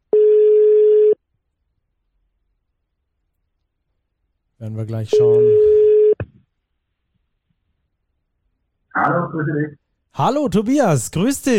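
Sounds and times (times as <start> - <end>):
telephone ringing tone: 0.1 - 1.2, 5.1 - 6.2
speech: 4.6 - 5.8, 9.1 - 11.5.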